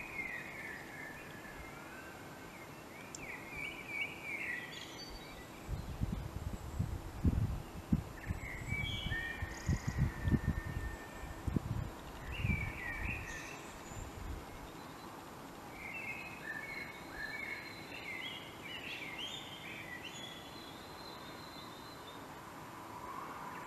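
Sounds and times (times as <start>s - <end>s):
common blackbird song: 0.0s - 22.4s, 23.4s - 23.6s
hiss: 0.0s - 23.6s.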